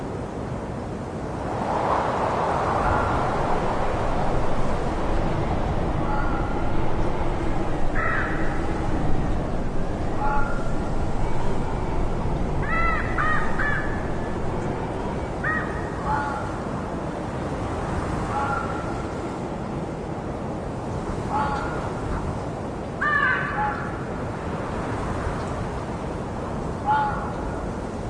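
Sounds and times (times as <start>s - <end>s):
rushing wind: 0.0s - 28.0s
crow cawing: 5.9s - 14.8s, 15.4s - 16.5s, 23.0s - 24.0s, 26.8s - 27.4s.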